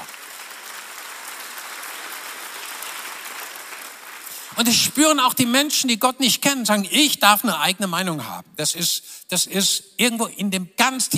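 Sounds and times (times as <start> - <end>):
audience applauding: 0.0 - 5.1
speech: 4.5 - 11.1.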